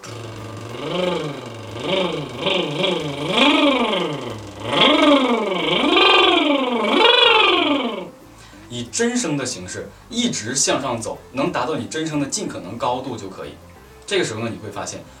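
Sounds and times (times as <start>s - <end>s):
voice imitating a motorcycle engine revving with a lip trill: 0.0s - 8.1s
speech: 0.8s - 2.0s, 9.2s - 15.1s.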